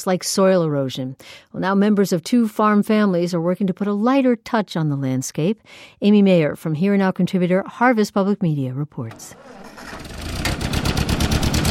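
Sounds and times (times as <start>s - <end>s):
speech: 0.0s - 10.1s
1947 Ford tractor engine running: 9.3s - 11.6s.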